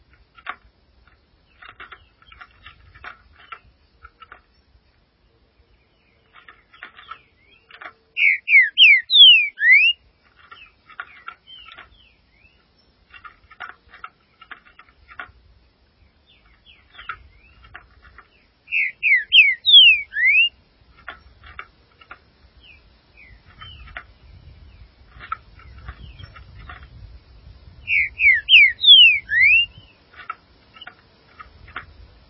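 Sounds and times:
green-winged saltator whistled song: 8.2 - 10.0, 18.7 - 20.6, 27.8 - 29.8.

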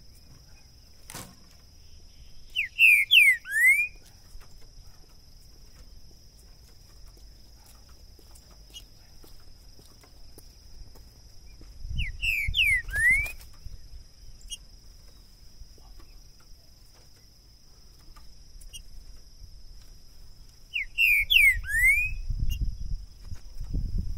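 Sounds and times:
green-winged saltator song of rich downslurred whistles: 2.1 - 4.0, 11.5 - 13.8, 20.7 - 22.9.

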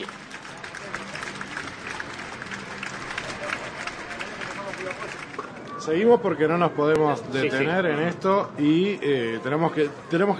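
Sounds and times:
audience applause: 0.0 - 5.7
speech: 5.8 - 10.3.

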